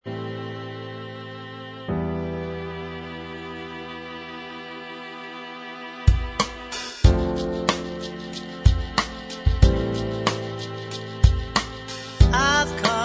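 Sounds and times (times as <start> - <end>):
backing track: 4.4 - 13.0.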